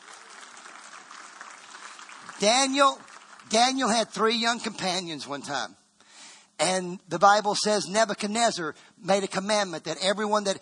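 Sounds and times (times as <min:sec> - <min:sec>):
audience clapping: 0:00.0 - 0:04.1
speech: 0:02.4 - 0:05.8, 0:06.6 - 0:10.6.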